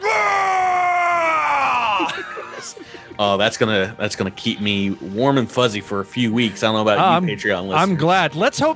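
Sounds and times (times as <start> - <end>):
person voicing a half-orc battle roar: 0.0 - 2.1
laughter: 1.7 - 3.4
speech: 3.2 - 8.7.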